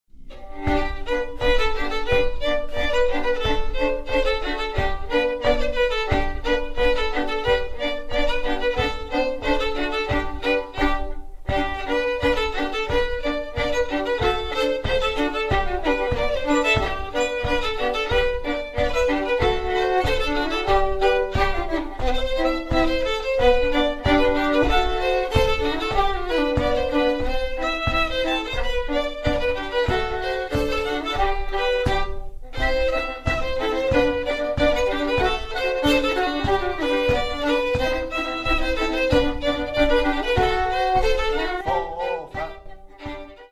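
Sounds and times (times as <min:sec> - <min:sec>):
polka music: 0:00.0 - 0:43.5.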